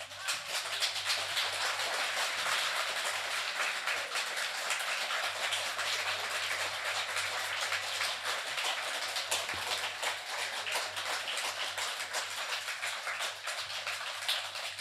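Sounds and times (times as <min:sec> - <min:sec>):
crowd clapping: 0:00.0 - 0:14.8.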